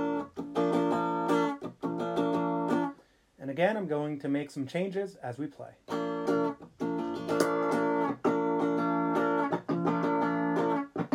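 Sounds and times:
clean-tone electric guitar chords through a Wampler Ego Compressor pedal: 0.0 - 2.9, 5.9 - 11.1
speech: 3.6 - 6.0.

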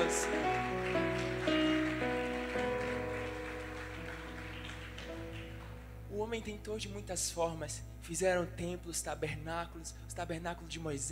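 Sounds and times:
audience applauding: 0.0 - 5.9
speech: 6.3 - 11.0.

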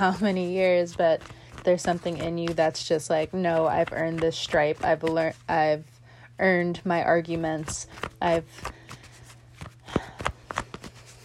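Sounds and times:
speech: 0.0 - 8.8
tarot cards being handled as a card is drawn: 0.1 - 5.5, 7.4 - 11.2.

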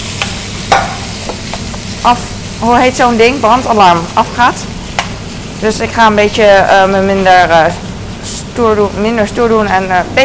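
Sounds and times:
bacon bits frying in a pan: 0.0 - 7.7
speech: 2.0 - 4.8, 5.6 - 10.2.

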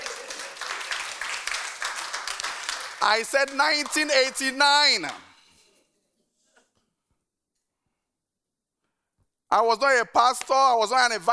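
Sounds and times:
audience clapping: 0.0 - 5.4
speech: 3.0 - 5.3, 9.5 - 11.3.

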